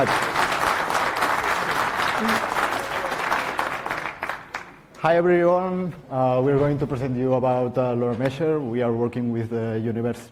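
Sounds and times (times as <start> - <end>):
speech: 0.0 - 0.2, 5.0 - 10.3
audience applause: 0.0 - 4.9.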